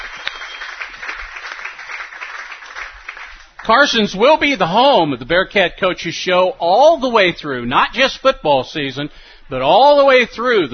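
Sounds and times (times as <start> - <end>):
audience applause: 0.0 - 3.7
speech: 3.6 - 10.7.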